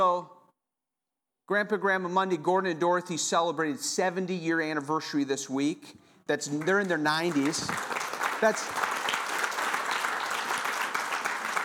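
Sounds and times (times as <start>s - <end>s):
speech: 0.0s - 0.4s, 1.5s - 8.8s
audience applause: 6.5s - 11.6s.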